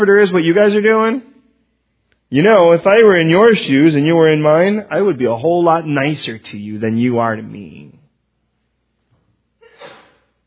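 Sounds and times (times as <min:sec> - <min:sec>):
speech: 0:00.0 - 0:01.3, 0:02.3 - 0:08.0
person sneezing: 0:09.6 - 0:10.4.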